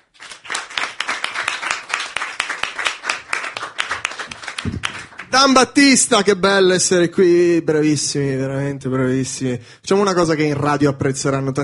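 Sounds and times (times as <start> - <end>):
audience applause: 0.0 - 5.6
speech: 4.6 - 11.6.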